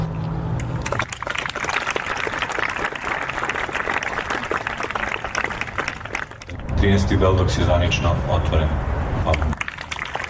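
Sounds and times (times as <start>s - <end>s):
audience applause at the opening of a documentary film festival in Belgrade: 0.9s - 6.7s, 9.5s - 10.2s
speech: 6.8s - 9.5s.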